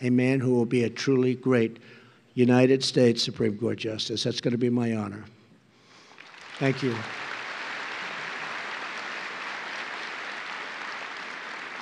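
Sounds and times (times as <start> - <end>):
speech: 0.0 - 5.4, 6.6 - 7.2
crowd clapping in spontaneous applause: 6.1 - 11.8.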